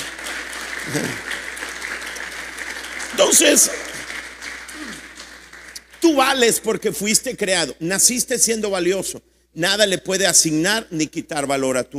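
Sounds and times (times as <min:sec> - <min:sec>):
audience applause: 0:00.0 - 0:06.5
speech: 0:00.8 - 0:01.4, 0:03.1 - 0:03.9, 0:06.0 - 0:11.9.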